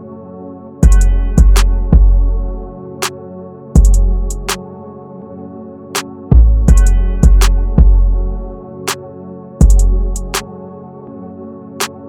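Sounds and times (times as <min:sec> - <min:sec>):
instrumental music: 0:00.8 - 0:03.1, 0:03.8 - 0:04.7, 0:06.0 - 0:09.0, 0:09.6 - 0:10.6.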